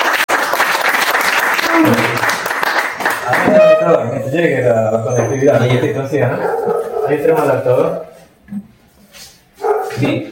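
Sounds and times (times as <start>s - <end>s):
audience applause: 0.0s - 4.1s
speech: 1.8s - 2.4s, 3.8s - 8.7s, 10.0s - 10.2s.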